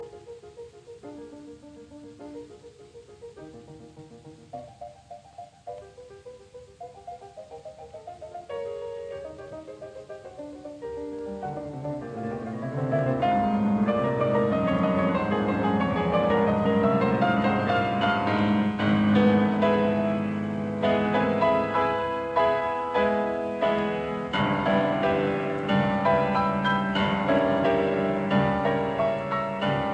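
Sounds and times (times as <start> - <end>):
classical piece in C minor: 0.0 - 29.9.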